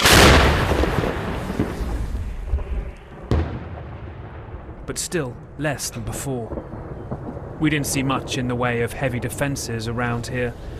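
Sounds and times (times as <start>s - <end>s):
Paladin self-propelled howitzer firing American rounds: 0.0s - 10.7s
speech: 4.9s - 6.7s, 7.6s - 10.7s.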